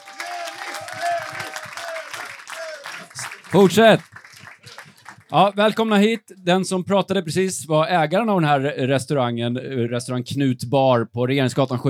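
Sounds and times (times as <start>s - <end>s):
applause: 0.0s - 6.3s
speech: 3.5s - 4.1s, 5.3s - 11.8s.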